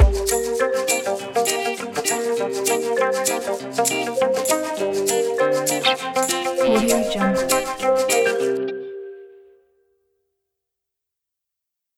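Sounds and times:
cumbia music: 0.0 - 9.2.

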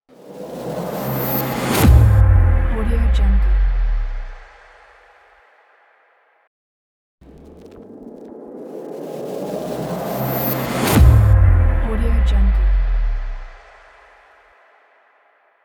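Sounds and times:
epic impact hit: 0.5 - 5.4, 9.7 - 14.2.

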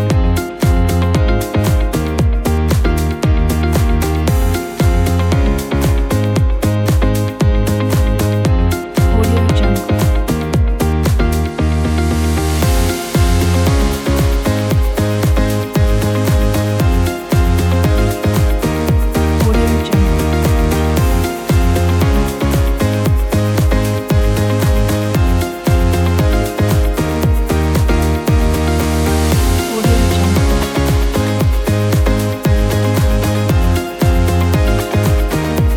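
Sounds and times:
happy corporate pop music: 0.0 - 35.7.

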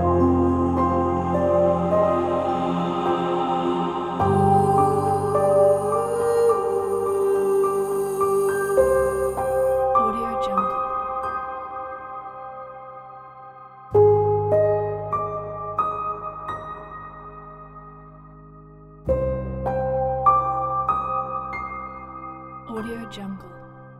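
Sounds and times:
sad emotional piano soundscape: 0.0 - 23.9.

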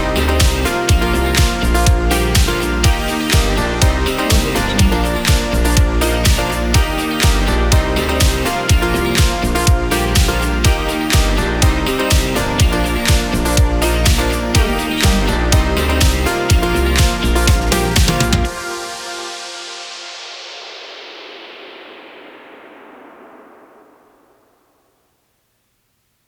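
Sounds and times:
uplifting guitar pop: 0.0 - 19.0.

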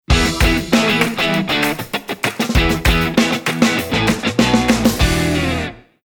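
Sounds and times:
funky groove: 0.1 - 5.8
claps: 0.2 - 5.1.

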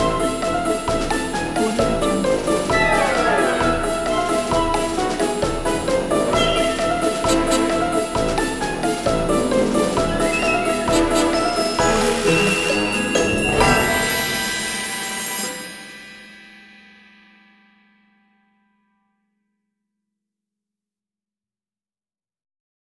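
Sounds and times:
clown chase music: 0.0 - 16.2.

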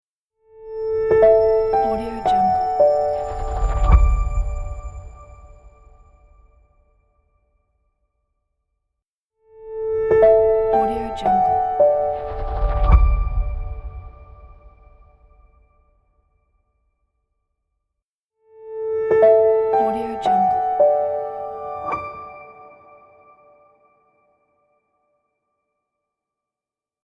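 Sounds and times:
light elegant piano logo: 0.6 - 6.5, 9.7 - 15.5, 18.9 - 23.9.

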